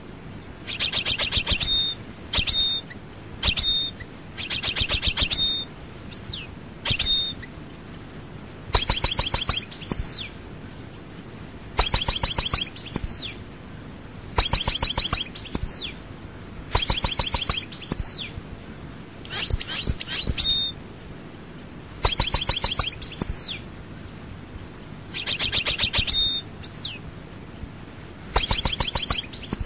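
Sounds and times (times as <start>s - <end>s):
European goldfinch song: 0.6s - 7.6s, 8.7s - 10.4s, 11.8s - 13.5s, 14.4s - 16.1s, 16.7s - 18.4s, 19.3s - 20.8s, 22.0s - 23.7s, 25.1s - 27.1s, 28.3s - 29.6s.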